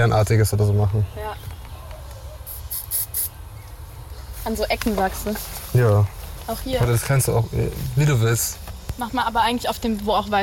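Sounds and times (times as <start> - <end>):
speech: 0.0 - 1.6, 4.4 - 10.4
paint spray can spraying: 2.4 - 3.4.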